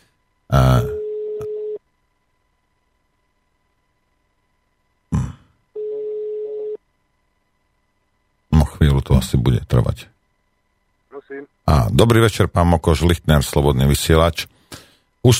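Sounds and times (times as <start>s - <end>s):
telephone ringing tone: 1.0s - 1.8s, 5.8s - 6.8s
speech: 9.2s - 10.2s, 11.3s - 15.3s.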